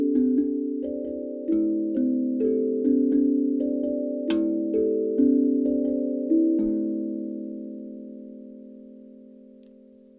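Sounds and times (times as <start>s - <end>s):
hapi drum in D minor: 0.0s - 7.2s.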